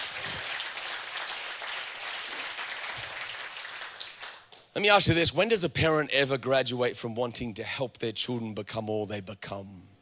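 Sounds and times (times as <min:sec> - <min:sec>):
crowd clapping: 0:00.0 - 0:04.7
speech: 0:04.8 - 0:09.9.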